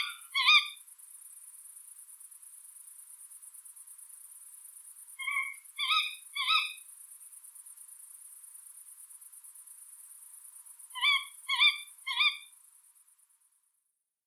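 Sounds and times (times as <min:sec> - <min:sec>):
tawny owl Strix aluco: 0:00.0 - 0:00.8, 0:05.2 - 0:06.8, 0:11.0 - 0:12.5.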